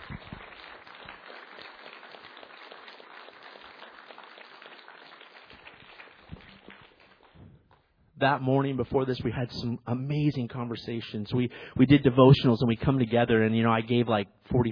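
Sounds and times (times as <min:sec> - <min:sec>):
crowd clapping: 0:00.0 - 0:07.9
speech: 0:08.2 - 0:14.7.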